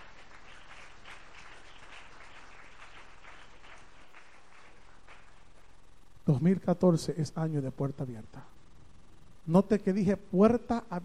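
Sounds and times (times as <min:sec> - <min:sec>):
audience applauding: 0:00.0 - 0:05.7
speech: 0:06.3 - 0:08.6, 0:09.5 - 0:11.0.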